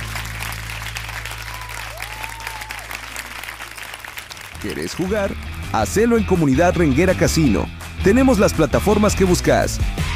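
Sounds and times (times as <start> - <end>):
audience applause: 0.0 - 5.9
speech: 4.6 - 10.1.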